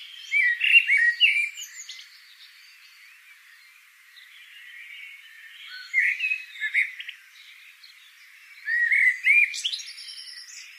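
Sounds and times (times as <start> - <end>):
Eurasian blackbird Turdus merula singing: 0.0 - 10.7.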